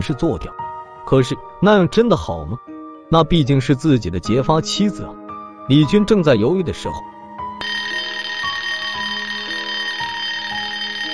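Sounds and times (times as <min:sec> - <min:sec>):
speech: 0:00.0 - 0:07.8
mobile phone ringing: 0:07.6 - 0:11.1.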